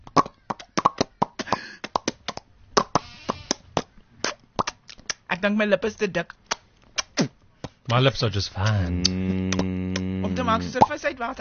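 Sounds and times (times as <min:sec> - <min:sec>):
wet mouth clicks and pops imitating a fish flopping out of water: 0:00.0 - 0:05.2, 0:06.4 - 0:08.0, 0:08.6 - 0:10.1
speech: 0:05.4 - 0:06.4, 0:07.9 - 0:11.3.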